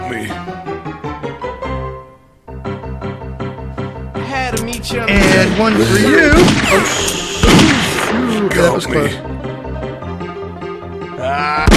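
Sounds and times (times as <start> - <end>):
speech: 4.8 - 7.2, 8.6 - 9.3
gunshot: 6.2 - 8.4.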